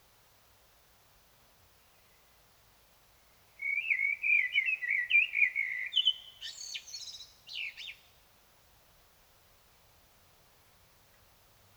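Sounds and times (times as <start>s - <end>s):
common blackbird singing: 3.6s - 8.0s.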